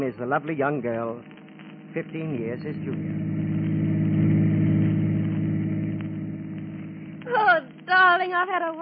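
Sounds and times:
speech: 0:00.0 - 0:01.4, 0:02.0 - 0:03.4, 0:08.0 - 0:08.8
chauffeur-driven car engine while driving: 0:01.8 - 0:07.9.

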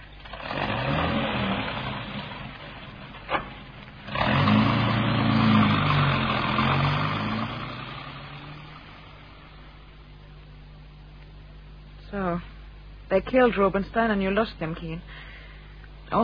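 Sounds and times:
car engine revving and driving off to Harrington Gardens: 0:00.0 - 0:10.0
speech: 0:13.1 - 0:15.3.

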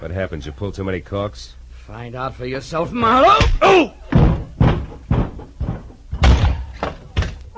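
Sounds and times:
speech: 0:00.0 - 0:04.0
door opening and slamming: 0:03.4 - 0:05.4, 0:06.1 - 0:07.4.

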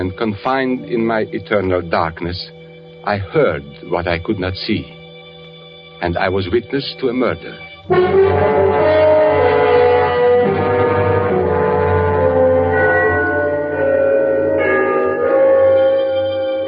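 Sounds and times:
speech: 0:00.0 - 0:05.0, 0:06.0 - 0:08.8
bells of Trinity church chiming the three-quarter hour: 0:00.0 - 0:16.6.

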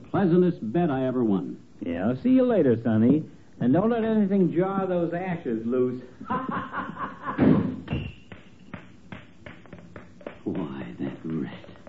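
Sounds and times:
speech: 0:00.1 - 0:07.6, 0:10.4 - 0:11.7
laughter: 0:06.2 - 0:07.8
door slamming shut: 0:07.4 - 0:08.1.

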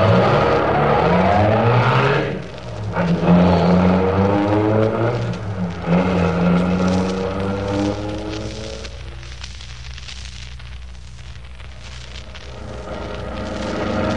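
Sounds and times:
getaway car engine revving and accelerating: 0:00.0 - 0:08.9, 0:12.5 - 0:14.1.

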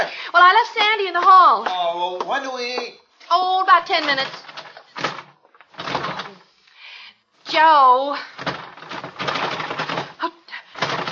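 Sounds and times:
speech: 0:00.4 - 0:04.4, 0:07.5 - 0:08.4
locked door handle rattled and pushed: 0:03.8 - 0:06.4, 0:08.3 - 0:10.2, 0:10.8 - 0:11.1.

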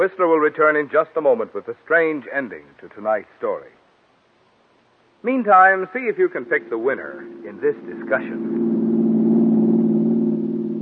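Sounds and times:
speech: 0:00.0 - 0:03.8, 0:05.2 - 0:08.8
car engine running smoothly: 0:06.4 - 0:10.8.

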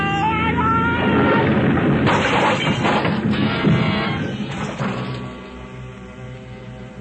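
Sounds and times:
aircraft crash-landing: 0:01.0 - 0:05.5.

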